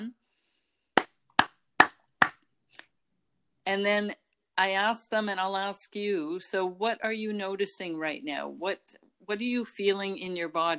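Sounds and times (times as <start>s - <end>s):
hard hand claps: 1.0s - 2.4s
speech: 3.7s - 10.7s.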